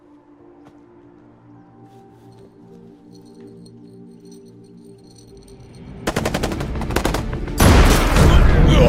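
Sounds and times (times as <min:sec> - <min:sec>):
sniper gunfire: 0:06.1 - 0:08.7.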